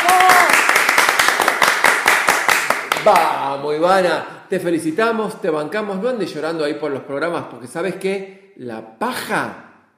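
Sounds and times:
a few people clapping in a studio: 0:00.0 - 0:03.6
speech: 0:03.0 - 0:09.7.

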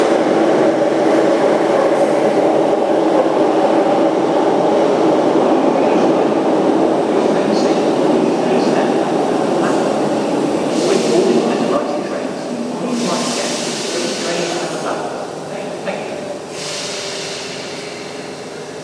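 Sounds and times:
trains at Kings Cross station: 0:00.0 - 0:18.8.

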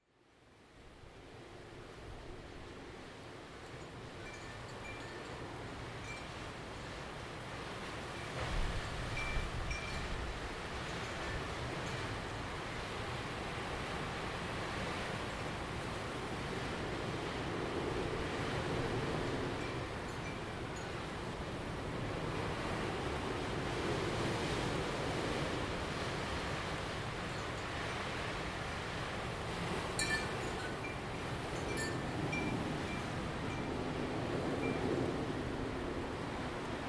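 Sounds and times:
windy soundscape: 0:00.0 - 0:36.8.

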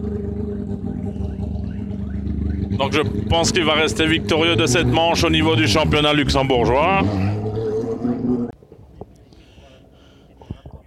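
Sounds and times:
rally car driving off: 0:00.0 - 0:08.6
speech: 0:02.8 - 0:07.4.

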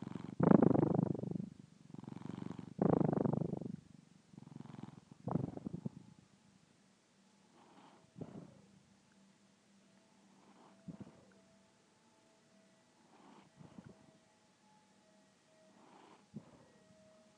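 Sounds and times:
snoring: 0:00.0 - 0:03.8, 0:04.4 - 0:06.0, 0:07.4 - 0:08.7, 0:10.3 - 0:11.4, 0:13.0 - 0:14.0, 0:15.7 - 0:16.7
purring: 0:00.0 - 0:06.2, 0:07.4 - 0:08.8, 0:10.2 - 0:11.4, 0:13.0 - 0:14.2, 0:15.7 - 0:16.8.

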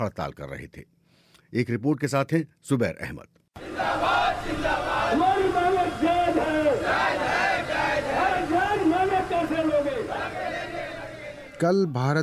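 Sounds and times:
speech: 0:00.0 - 0:06.1, 0:11.6 - 0:12.2
striking workers chanting slogans during a Bharat Bandh nationwide strike in India: 0:03.6 - 0:11.6.

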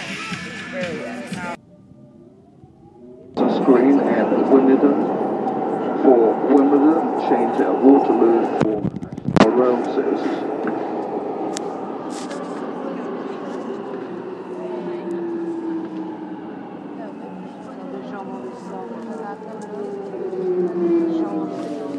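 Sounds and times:
metro service announcement voice about closed lines: 0:00.0 - 0:01.6, 0:03.3 - 0:21.9
metro station low rumble: 0:01.5 - 0:17.7
faint tonal whine: 0:01.6 - 0:21.9.

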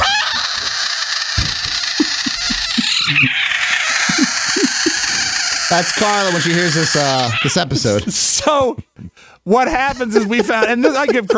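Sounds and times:
South American budgett frog screaming: 0:00.0 - 0:07.7
laughter: 0:01.7 - 0:11.3
speech: 0:05.7 - 0:08.9, 0:09.5 - 0:11.3.

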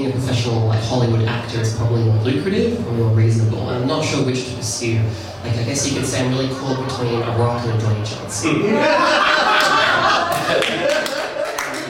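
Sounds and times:
speech: 0:00.1 - 0:09.4
laughter: 0:08.4 - 0:11.8
audience applause: 0:09.4 - 0:11.8.

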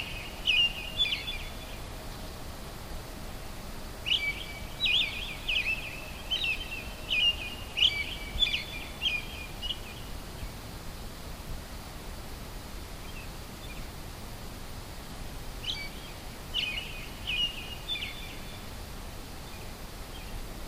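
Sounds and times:
American robin dawn song: 0:00.0 - 0:01.9, 0:04.0 - 0:10.5, 0:15.6 - 0:18.7.

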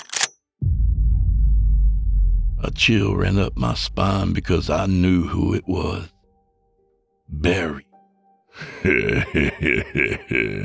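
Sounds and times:
shotgun being racked: 0:00.0 - 0:00.3
low hum: 0:00.6 - 0:05.7
speech: 0:02.6 - 0:06.2, 0:07.3 - 0:07.9, 0:08.6 - 0:10.6
laughter: 0:08.6 - 0:10.6.

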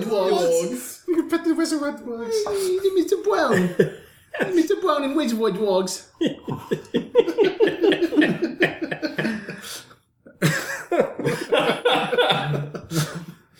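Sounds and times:
speech: 0:00.1 - 0:07.0
laughter: 0:02.3 - 0:05.4, 0:06.0 - 0:13.4
person choking and coughing on bread: 0:06.3 - 0:07.0, 0:11.9 - 0:13.2.

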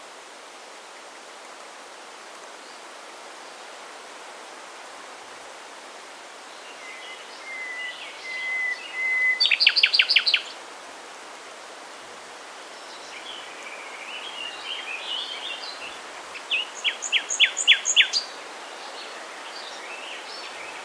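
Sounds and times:
nightingale singing: 0:06.6 - 0:10.6, 0:12.8 - 0:20.8.

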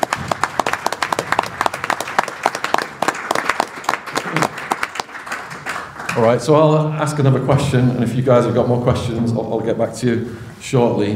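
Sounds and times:
audience applause: 0:00.0 - 0:06.6
speech: 0:06.2 - 0:11.1.

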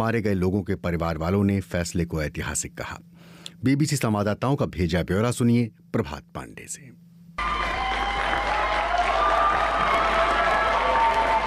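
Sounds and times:
speech: 0:00.0 - 0:07.6
people in court clapping loudly: 0:07.4 - 0:11.4
people in court shouting with joy: 0:07.4 - 0:11.4.

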